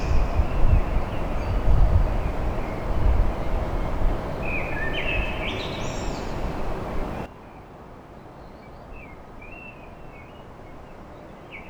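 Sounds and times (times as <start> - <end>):
common blackbird singing: 0.0 - 7.3
low background noise: 0.0 - 7.3.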